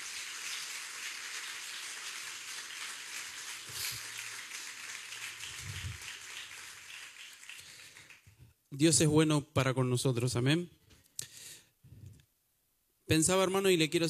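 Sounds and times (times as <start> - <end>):
audience applause: 0.0 - 8.3
speech: 8.7 - 10.8, 13.1 - 14.0.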